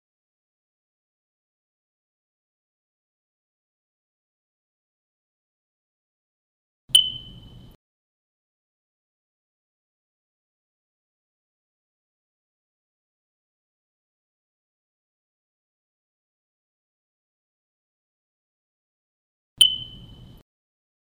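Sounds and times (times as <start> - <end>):
low battery chirp: 6.9 - 7.8, 19.6 - 20.4.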